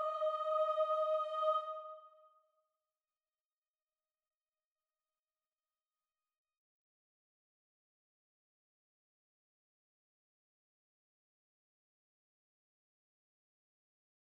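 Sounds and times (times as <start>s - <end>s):
soprano singing: 0.0s - 2.2s.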